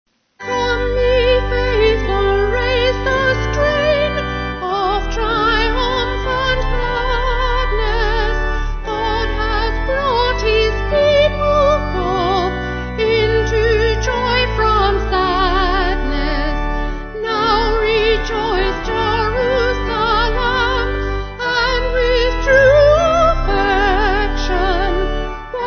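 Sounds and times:
vocal organ: 0.4s - 25.6s.

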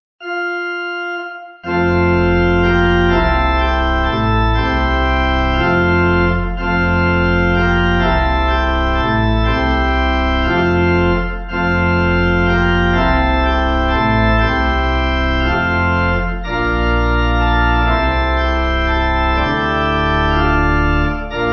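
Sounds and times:
pipe organ: 0.2s - 21.5s.

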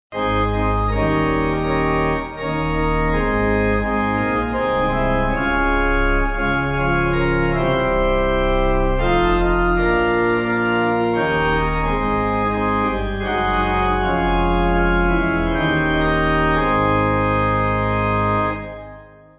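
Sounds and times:
pipe organ: 0.1s - 19.3s.

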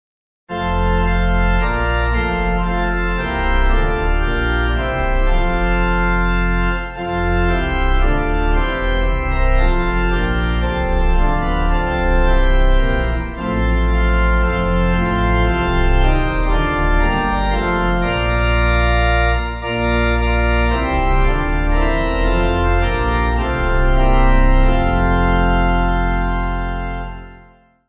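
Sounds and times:
pipe organ: 0.5s - 27.8s.

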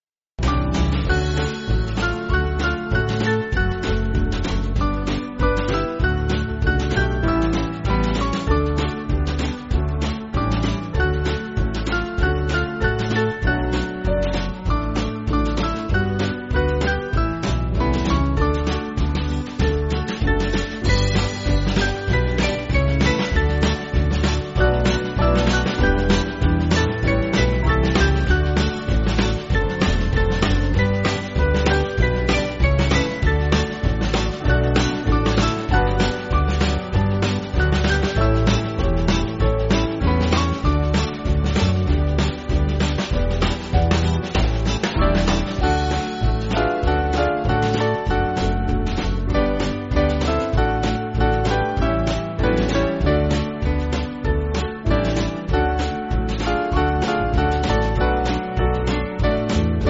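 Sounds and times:
band backing music: 0.4s - 59.8s.

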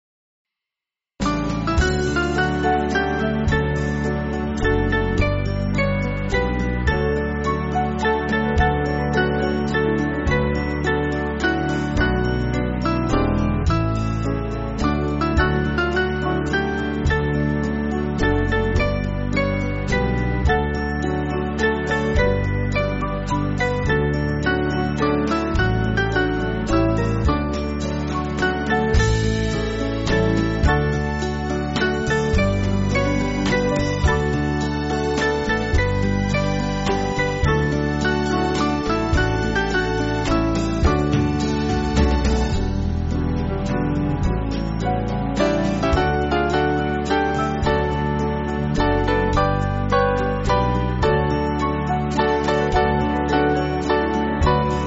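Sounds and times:
band backing track for churches: 1.2s - 54.8s.

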